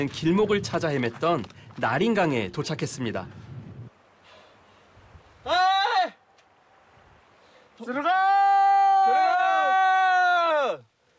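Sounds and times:
speech: 0:00.0 - 0:03.4, 0:07.8 - 0:08.4
people shouting loudly to call a boat: 0:05.4 - 0:06.2, 0:07.9 - 0:10.8.

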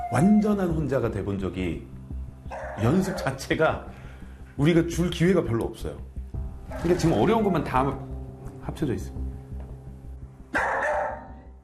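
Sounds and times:
speech: 0:00.1 - 0:02.0, 0:02.8 - 0:04.0, 0:04.6 - 0:06.1, 0:06.7 - 0:08.1, 0:08.7 - 0:09.2
dog barking excitedly while left alone at home: 0:02.5 - 0:03.4, 0:10.5 - 0:11.5.

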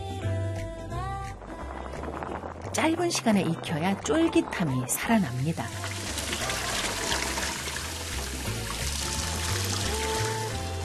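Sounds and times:
music: 0:00.0 - 0:10.8
speech: 0:02.8 - 0:06.0
cold water pouring and splashing over cooked green noodles being rinsed: 0:05.0 - 0:10.8.

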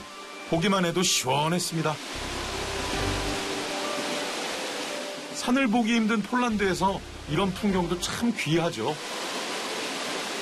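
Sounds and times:
speech: 0:00.5 - 0:02.5, 0:05.4 - 0:09.2
waterfall roaring: 0:01.1 - 0:06.6, 0:08.4 - 0:10.4.

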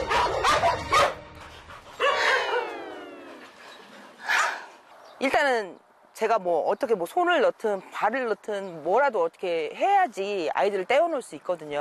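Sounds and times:
dog yelping: 0:00.0 - 0:01.2, 0:02.0 - 0:03.6
dogs barking and snarling in a scuffle: 0:00.0 - 0:04.9
speech: 0:05.2 - 0:11.7.

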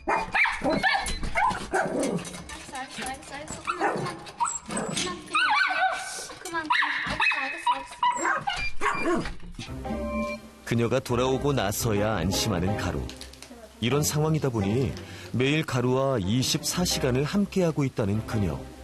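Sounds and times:
several dogs barking loudly: 0:00.1 - 0:02.3, 0:03.5 - 0:09.3
speech: 0:10.7 - 0:13.2, 0:13.8 - 0:18.8.

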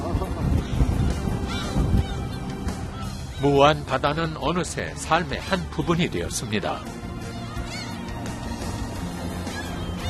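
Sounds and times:
seagulls calling: 0:00.0 - 0:04.3, 0:06.3 - 0:10.0
speech: 0:03.4 - 0:07.1.

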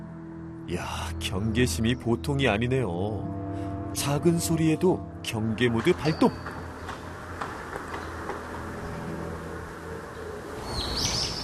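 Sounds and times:
speech: 0:00.7 - 0:06.6
bird chirping: 0:05.8 - 0:11.4.

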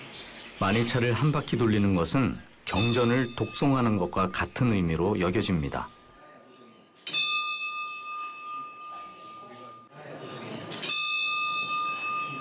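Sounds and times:
speech: 0:00.6 - 0:06.0
temple bell ringing: 0:02.6 - 0:12.4
murmur of voices: 0:09.9 - 0:10.9.

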